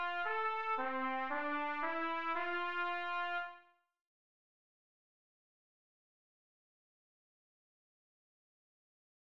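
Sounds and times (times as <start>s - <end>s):
slow lyrical trumpet etudes in C: 0.0s - 3.8s.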